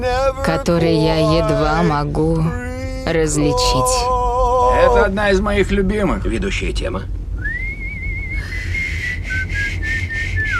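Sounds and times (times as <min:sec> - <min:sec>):
speech: 0:00.0 - 0:07.2
person whistling a tune: 0:07.4 - 0:10.5.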